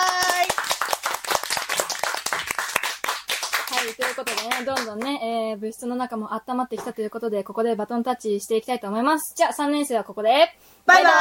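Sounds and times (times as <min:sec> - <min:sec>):
people clapping: 0:00.0 - 0:05.2
speech: 0:03.9 - 0:11.2.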